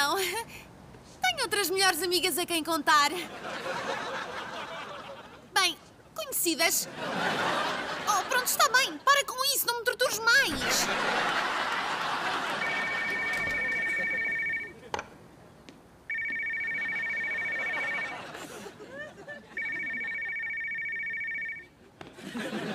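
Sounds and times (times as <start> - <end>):
speech: 1.4 - 4.3, 6.4 - 11.5
laughter: 3.2 - 5.5, 6.8 - 8.8, 10.4 - 15.0, 16.8 - 20.4, 21.7 - 22.7
telephone ringing with a trilling electronic tone: 10.6 - 14.8, 16.1 - 18.5, 19.4 - 21.8.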